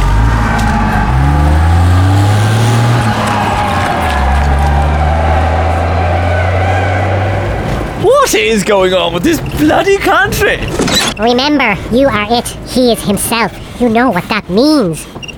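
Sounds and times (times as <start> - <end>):
car engine drone driving off: 0.0 - 11.2
speech: 8.3 - 15.3.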